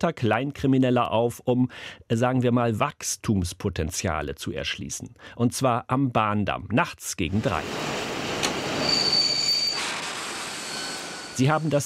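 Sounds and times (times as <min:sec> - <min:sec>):
speech: 0:00.0 - 0:08.0, 0:11.4 - 0:11.8
train wheels squealing while braking: 0:08.6 - 0:11.8.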